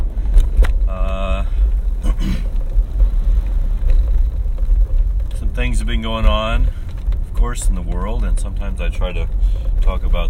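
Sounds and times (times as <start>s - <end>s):
car engine and road rumble from inside a car on a morning drive to work: 0.0s - 10.2s
speech: 5.8s - 6.8s, 7.4s - 10.2s.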